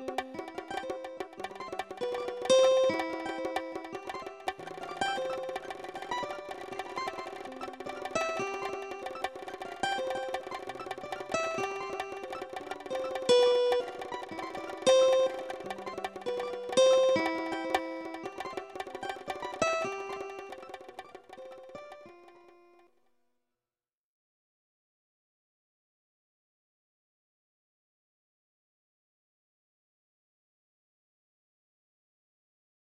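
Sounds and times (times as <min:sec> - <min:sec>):
guitar playing: 0:00.0 - 0:22.8.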